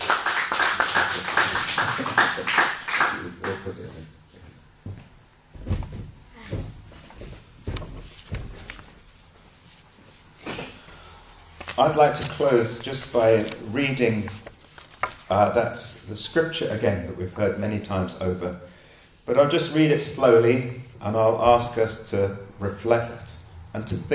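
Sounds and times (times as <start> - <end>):
crowd applauding: 0.0 - 3.8
speech: 11.8 - 14.4, 15.3 - 18.7, 19.3 - 24.1.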